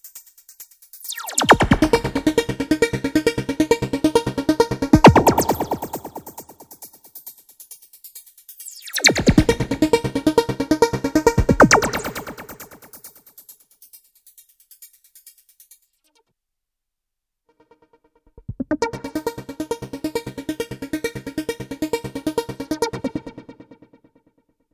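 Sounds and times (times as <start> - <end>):
plucky synth arpeggio with cut delay and reverb: 1.1 - 6.8, 8.9 - 13.0, 18.6 - 23.6.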